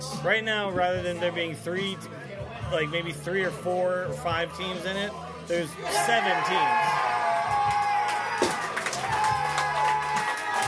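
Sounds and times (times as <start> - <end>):
speech: 0.2 - 7.2
stadium crowd cheering on a TV broadcast: 5.8 - 10.6
scattered whoops and shouts: 5.9 - 10.6.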